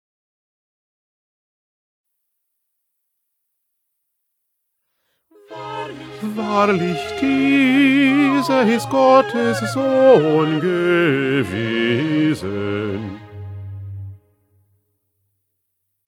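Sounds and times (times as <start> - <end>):
bass: 5.6 - 14.3.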